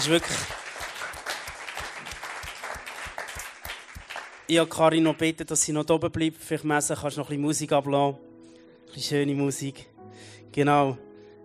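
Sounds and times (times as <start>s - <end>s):
speech: 0.0s - 0.6s, 4.5s - 8.3s, 9.0s - 11.1s
audience applause: 0.0s - 4.5s.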